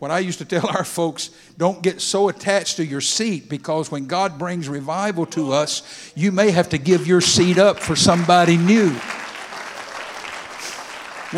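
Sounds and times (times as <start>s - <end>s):
speech: 0.0s - 9.2s
church congregation applauding: 6.6s - 11.3s.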